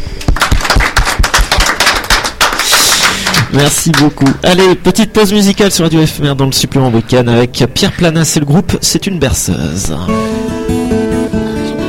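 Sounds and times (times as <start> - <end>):
audience applauding the jury: 0.2 - 4.8
speech: 3.5 - 10.8.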